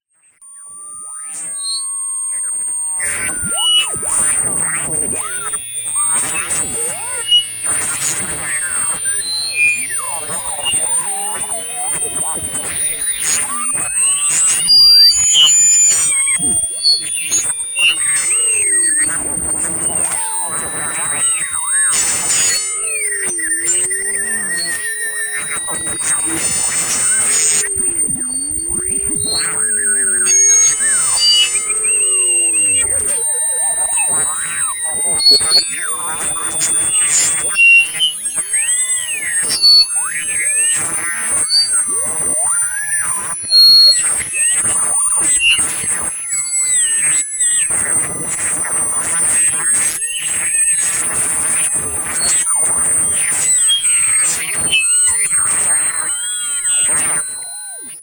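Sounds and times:
feedback: 0:00.5 - 0:57.8.

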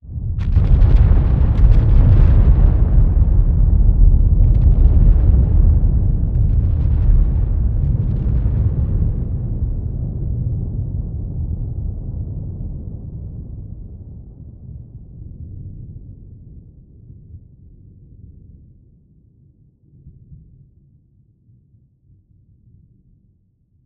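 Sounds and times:
eruption rumble: 0:00.0 - 0:20.8
cascading explosion during volcanic eruption: 0:00.4 - 0:09.6.

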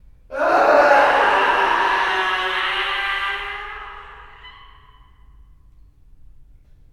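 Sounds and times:
person screaming: 0:00.3 - 0:05.1.

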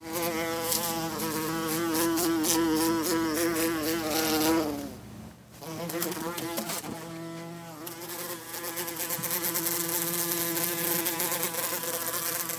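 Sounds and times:
bumblebee buzzing: 0:00.0 - 0:05.0, 0:05.6 - 0:12.5.

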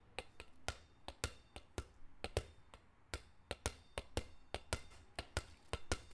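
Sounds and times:
large ball bouncing: 0:00.2 - 0:06.1.

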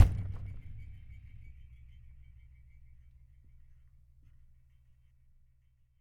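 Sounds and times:
low hit: 0:00.0 - 0:02.0.

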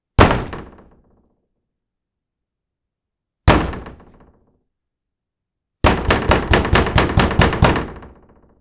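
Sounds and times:
aggressive door pounding: 0:00.1 - 0:01.2, 0:03.5 - 0:04.5, 0:05.8 - 0:08.5.

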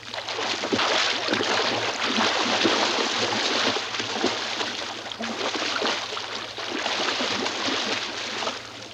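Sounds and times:
swimming in a pool: 0:00.0 - 0:08.9.

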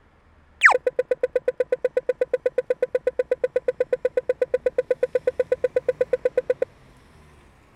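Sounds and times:
New Zealand pedestrian traffic signal: 0:00.6 - 0:06.7.

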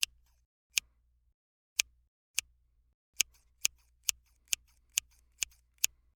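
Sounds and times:
scissors: 0:03.2 - 0:05.9.

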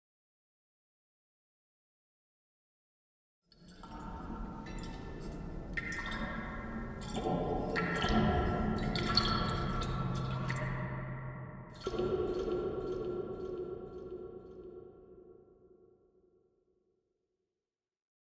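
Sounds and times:
water in a cave: 0:03.5 - 0:16.8.

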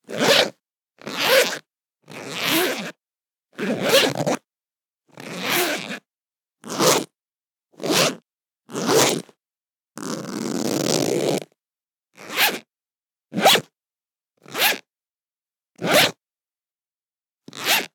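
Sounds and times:
zippers zipping: 0:00.1 - 0:02.9, 0:03.6 - 0:04.4, 0:05.2 - 0:06.0, 0:06.7 - 0:07.0, 0:07.8 - 0:09.3, 0:10.0 - 0:11.5, 0:12.2 - 0:12.6, 0:13.3 - 0:13.6, 0:14.5 - 0:14.8, 0:15.8 - 0:16.2, 0:17.5 - 0:17.9.

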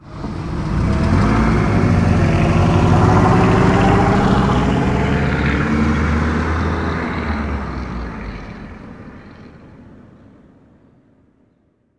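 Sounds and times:
American large car driving off: 0:00.0 - 0:10.2.

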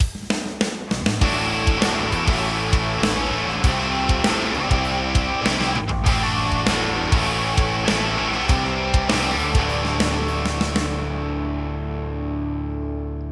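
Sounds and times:
rock and roll transition music: 0:00.0 - 0:13.3.

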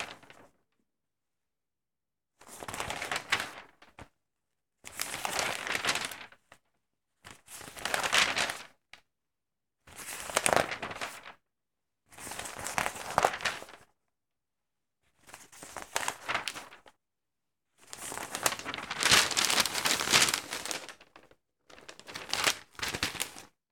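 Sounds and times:
newspaper pages rustling while reading: 0:02.6 - 0:03.8, 0:05.0 - 0:06.4, 0:07.6 - 0:08.7, 0:10.1 - 0:11.3, 0:12.2 - 0:13.8, 0:15.3 - 0:16.9, 0:17.8 - 0:23.6.

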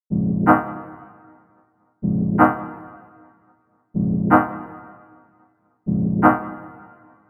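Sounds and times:
techno chords: 0:00.1 - 0:01.3, 0:02.0 - 0:03.0, 0:04.0 - 0:05.0, 0:05.9 - 0:07.0.

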